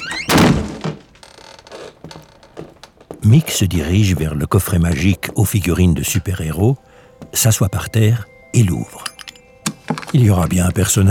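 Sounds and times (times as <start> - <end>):
creaking attic door pushed open: 0.0 - 3.2
speech: 3.2 - 9.1, 10.1 - 11.0.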